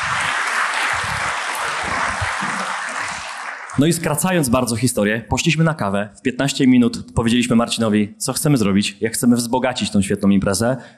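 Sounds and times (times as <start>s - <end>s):
crowd applause: 0.0s - 4.1s
speech: 3.8s - 10.9s.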